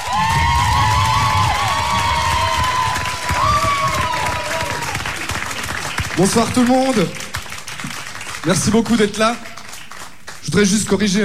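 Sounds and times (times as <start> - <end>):
audience cheering: 0.0 - 7.0
audience applause: 0.0 - 11.2
speech: 6.2 - 7.3, 8.4 - 9.5, 10.5 - 11.2.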